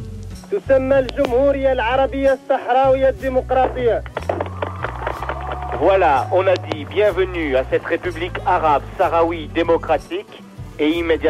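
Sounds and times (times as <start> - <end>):
speech: 0.5 - 4.1, 5.8 - 11.2
applause: 4.0 - 8.3
women's ululation: 4.4 - 6.6.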